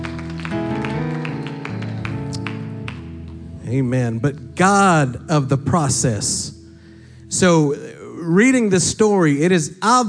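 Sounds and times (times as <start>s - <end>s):
audience clapping hands while seated: 0.0s - 3.4s
speech: 3.7s - 6.6s, 7.3s - 10.0s.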